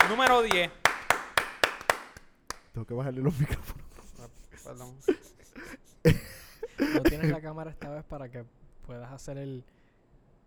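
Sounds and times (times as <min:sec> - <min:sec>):
hand clapping: 0:00.0 - 0:02.8
speech: 0:00.1 - 0:00.8, 0:02.8 - 0:03.9, 0:04.6 - 0:09.8
laughter: 0:03.2 - 0:07.9.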